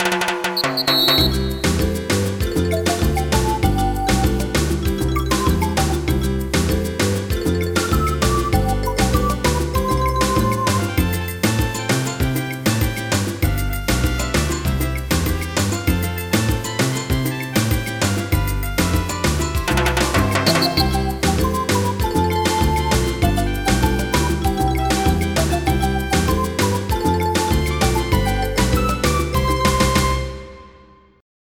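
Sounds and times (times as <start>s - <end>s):
easy listening music: 0.7s - 31.0s.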